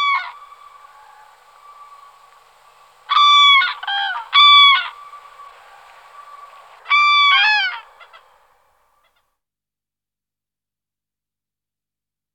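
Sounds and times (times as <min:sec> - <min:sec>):
common cranes trumpeting: 0:00.0 - 0:09.2.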